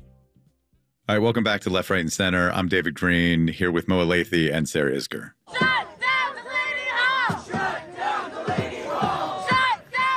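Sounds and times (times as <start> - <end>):
speech: 1.1 - 5.6
protesters chanting and shouting outside Delaney Hall ICE detention center, Newark, New Jersey: 5.4 - 10.1.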